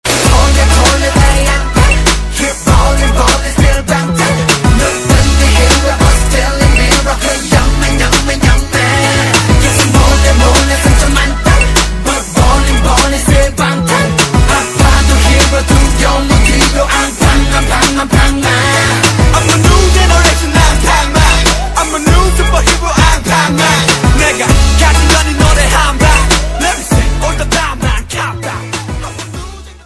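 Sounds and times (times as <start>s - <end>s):
Korean ringtone: 0.2s - 27.9s.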